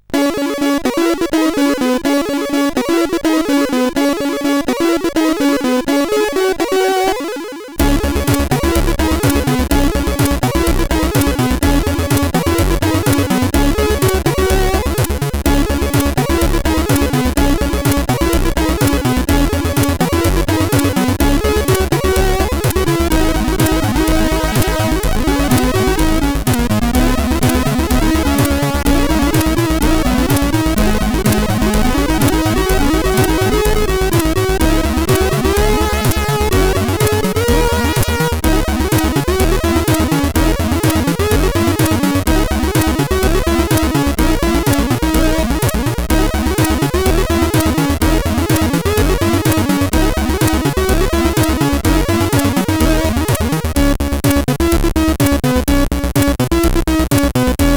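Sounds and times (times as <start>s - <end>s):
SID CSG8580 chiptune synthesizer: 0.0s - 57.7s.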